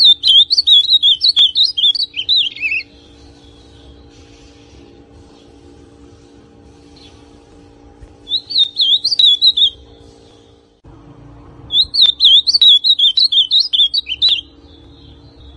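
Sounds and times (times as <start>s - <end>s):
Ultramarine grosbeak song: 0.0s - 10.8s, 11.6s - 15.5s.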